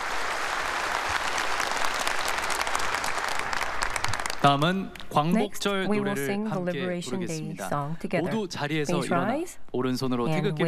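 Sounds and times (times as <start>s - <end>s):
audience applause: 0.0s - 4.8s
speech: 4.4s - 10.6s.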